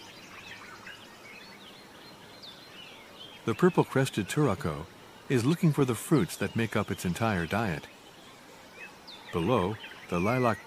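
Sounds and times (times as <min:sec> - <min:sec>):
steady hiss: 0:00.0 - 0:10.6
white-eared barbets calling: 0:00.0 - 0:10.6
speech: 0:03.5 - 0:08.0, 0:09.3 - 0:10.6.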